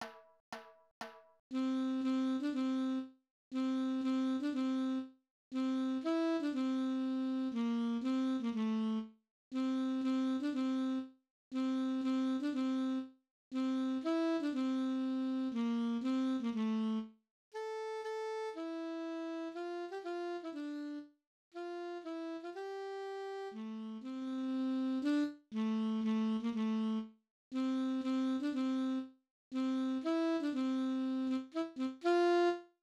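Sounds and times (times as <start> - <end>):
saxophone: 1.6 - 32.7.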